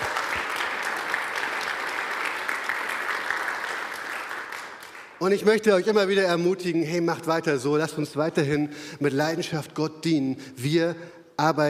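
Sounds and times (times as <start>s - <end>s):
audience applause: 0.0s - 5.2s
speech: 5.2s - 11.6s.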